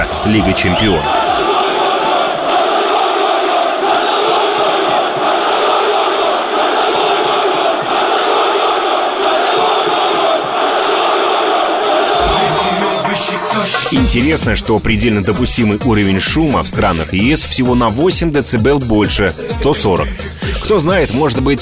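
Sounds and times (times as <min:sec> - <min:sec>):
football stadium crowd roaring: 0:00.0 - 0:17.0
speech: 0:00.2 - 0:01.2, 0:13.6 - 0:21.6.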